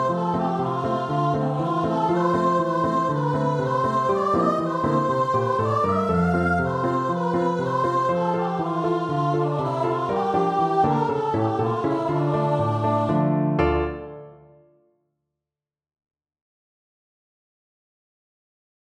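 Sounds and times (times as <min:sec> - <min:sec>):
unison choir singing: 0:00.0 - 0:14.0.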